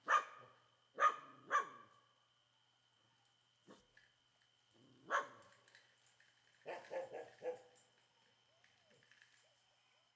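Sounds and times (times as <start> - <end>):
several dogs barking loudly in a quiet street: 0.0 - 1.8, 6.7 - 7.7.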